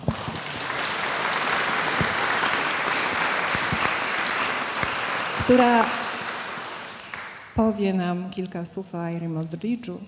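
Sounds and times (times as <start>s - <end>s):
audience applause: 0.0s - 7.5s
speech: 5.5s - 6.0s, 7.6s - 10.0s.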